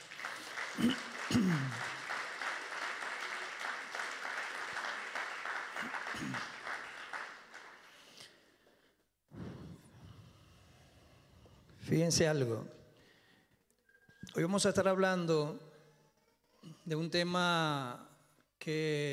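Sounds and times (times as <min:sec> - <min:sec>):
audience applause: 0:00.0 - 0:08.2
speech: 0:00.8 - 0:01.9, 0:12.0 - 0:12.8, 0:14.4 - 0:15.7, 0:16.9 - 0:19.1.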